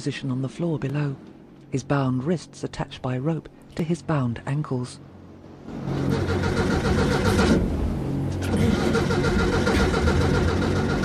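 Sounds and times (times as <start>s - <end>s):
speech: 0.0s - 6.0s
yacht engine starting: 5.7s - 11.0s.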